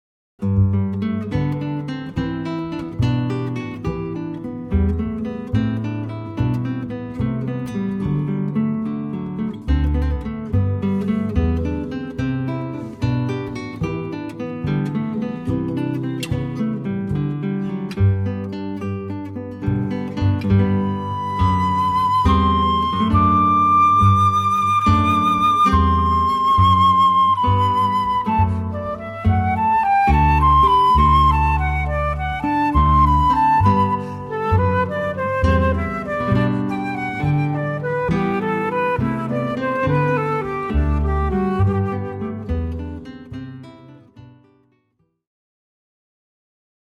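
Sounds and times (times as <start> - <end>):
bass: 0.4 - 43.9
guitar: 0.4 - 44.9
flute: 20.5 - 43.1.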